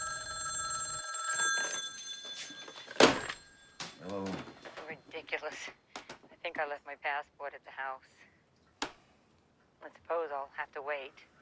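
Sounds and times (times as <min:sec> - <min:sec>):
telephone ringing with a bell-like metallic trill: 0:00.0 - 0:05.3
speech: 0:05.3 - 0:05.9, 0:06.5 - 0:08.2, 0:09.8 - 0:11.3.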